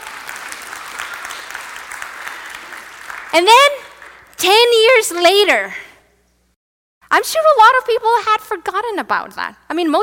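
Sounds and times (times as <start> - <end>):
audience applause: 0.0 - 4.4
speech: 3.3 - 3.8, 4.4 - 5.8, 7.1 - 10.0.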